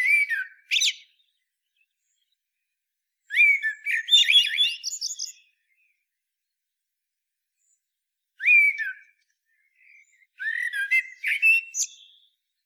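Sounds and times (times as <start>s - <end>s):
Eurasian blackbird Turdus merula singing: 0.0s - 2.3s, 3.3s - 5.9s, 8.4s - 12.6s.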